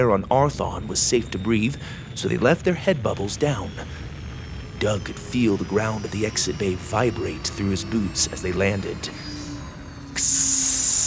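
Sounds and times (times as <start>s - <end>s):
speech: 0.0s - 4.0s, 4.8s - 9.3s, 10.2s - 10.7s
faint low hum: 0.0s - 11.0s
sci-fi door opening with a hiss: 9.0s - 11.0s.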